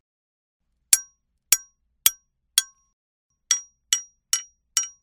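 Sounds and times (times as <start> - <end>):
hammer: 0.9 - 2.8, 3.4 - 5.0.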